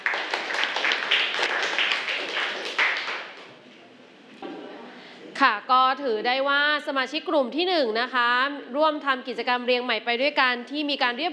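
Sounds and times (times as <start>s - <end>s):
class applauding: 0.0s - 3.5s
speech: 5.4s - 11.3s.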